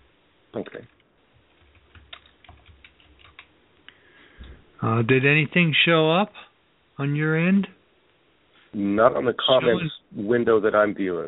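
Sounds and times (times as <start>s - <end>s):
speech: 0.5s - 1.0s, 4.8s - 7.8s, 8.7s - 11.2s
typing on a computer keyboard: 1.4s - 3.5s.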